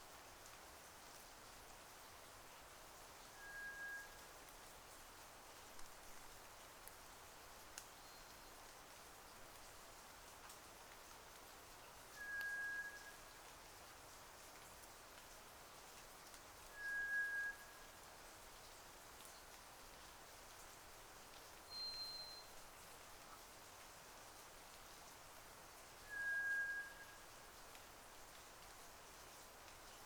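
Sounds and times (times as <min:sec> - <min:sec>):
background hiss: 0:00.0 - 0:30.0
White's thrush song of monotone whistles: 0:26.1 - 0:27.1.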